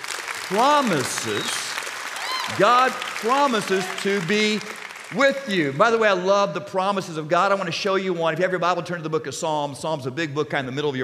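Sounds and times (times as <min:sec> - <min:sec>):
audience clapping: 0:00.0 - 0:06.4
speech: 0:00.5 - 0:01.6, 0:02.5 - 0:11.0.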